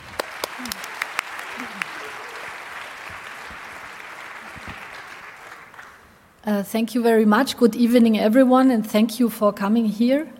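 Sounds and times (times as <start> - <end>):
audience applause: 0.0 - 6.2
speech: 6.5 - 10.3.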